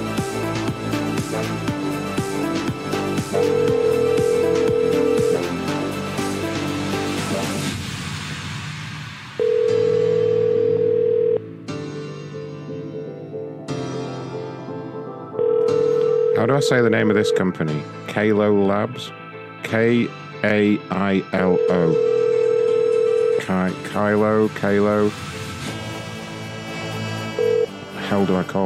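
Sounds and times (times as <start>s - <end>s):
music: 0.0s - 28.6s
telephone tones during an unanswered call: 3.3s - 5.7s, 9.4s - 11.4s, 15.4s - 17.6s, 21.4s - 23.7s, 27.4s - 27.7s
speech: 16.6s - 22.2s, 23.5s - 25.2s, 28.1s - 28.6s.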